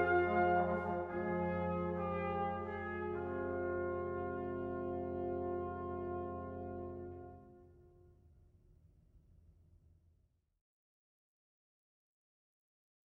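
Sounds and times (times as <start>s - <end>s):
brass playing a classical version of a carol: 0.0s - 8.0s.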